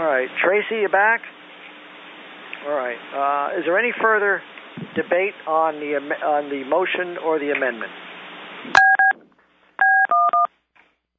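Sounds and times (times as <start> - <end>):
speech: 0.0 - 1.4, 2.6 - 8.0, 8.6 - 8.9
conference call beeps from muting and unmuting: 8.8 - 9.2, 9.8 - 10.5.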